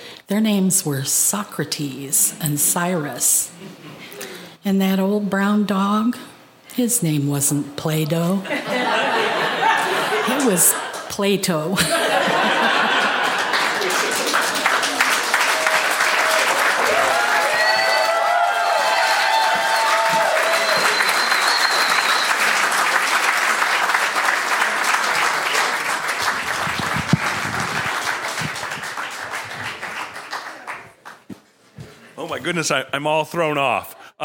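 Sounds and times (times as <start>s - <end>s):
speech: 0.3s - 9.3s, 10.3s - 12.5s, 32.5s - 34.2s
laughter: 3.6s - 4.2s, 8.4s - 11.1s, 11.7s - 15.3s
audience applause: 11.8s - 31.3s.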